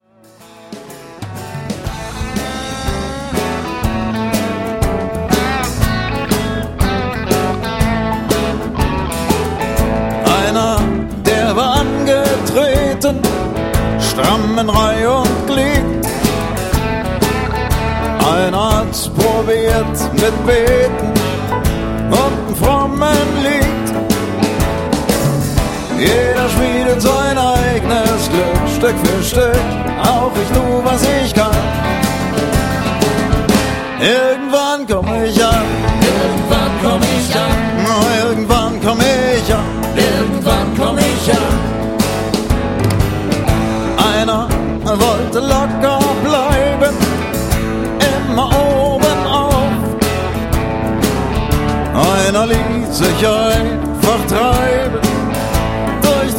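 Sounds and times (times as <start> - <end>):
blues music: 0.0 - 56.3.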